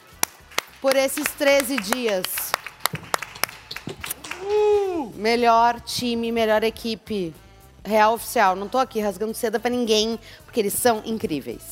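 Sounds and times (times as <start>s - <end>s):
scattered clapping from a small audience: 0.0s - 4.6s
speech: 0.8s - 2.6s, 4.5s - 11.7s
person whooping: 4.1s - 5.2s.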